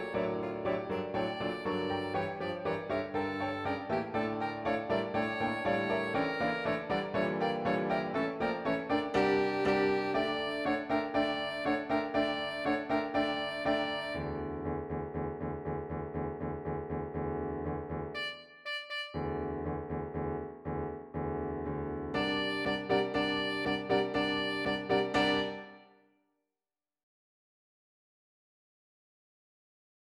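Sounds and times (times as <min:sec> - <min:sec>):
Arabian folk melody MIDI music: 0:00.0 - 0:25.8.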